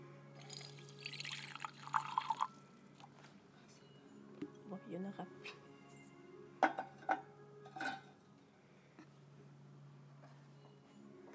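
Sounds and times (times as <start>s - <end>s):
water poured into a laboratory beaker to make an agar gel: 0.4s - 2.7s
speech: 4.7s - 5.6s.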